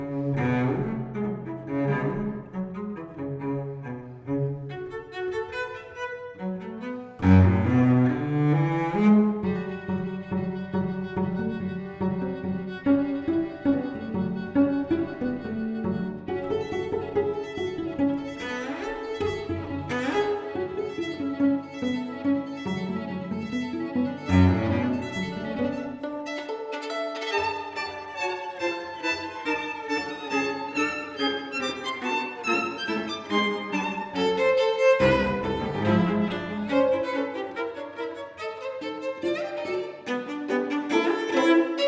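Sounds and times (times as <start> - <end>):
cello: 0.0 - 41.8
violin: 0.0 - 41.8.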